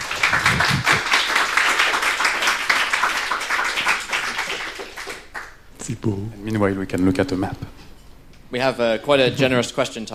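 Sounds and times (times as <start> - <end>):
audience applause: 0.0 - 5.6
speech: 6.0 - 7.8, 8.5 - 10.1.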